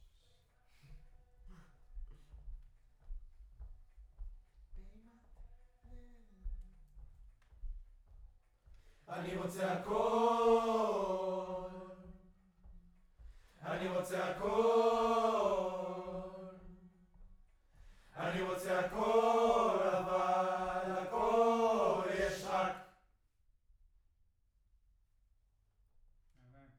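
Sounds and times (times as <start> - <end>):
distant choir: 9.0 - 12.4, 13.4 - 17.2, 17.8 - 23.0.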